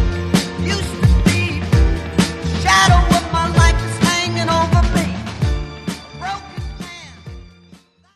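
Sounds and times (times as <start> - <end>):
1960s drum beat at 130 BPM: 0.0 - 5.7.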